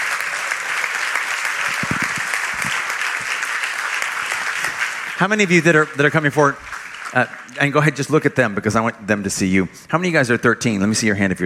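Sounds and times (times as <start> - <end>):
audience clapping: 0.0 - 8.9
speech: 5.2 - 11.4.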